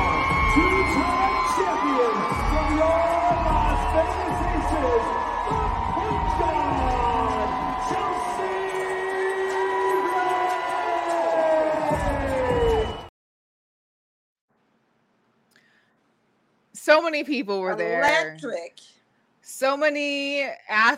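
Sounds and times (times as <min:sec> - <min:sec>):
loud sold-out arena crowd cheering: 0:00.0 - 0:13.1
speech: 0:17.1 - 0:18.9, 0:19.5 - 0:20.9.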